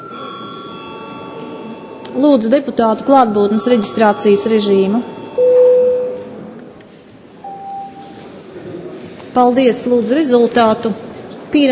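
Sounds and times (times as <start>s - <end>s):
parliament chamber bell ringing: 0.0s - 6.1s
speech: 2.1s - 5.2s, 9.4s - 11.7s.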